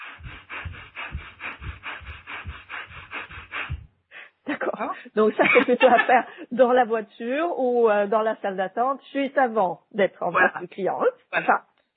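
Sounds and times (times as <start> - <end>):
rapid breathing in and out through nose: 0.0 - 4.4
laughter: 4.5 - 6.4
speech: 4.8 - 11.7.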